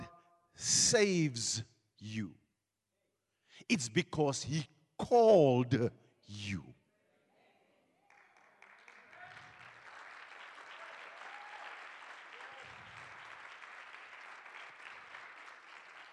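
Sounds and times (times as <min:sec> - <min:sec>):
speech: 0:00.6 - 0:02.4, 0:03.6 - 0:06.8
audience clapping hands: 0:08.1 - 0:16.1.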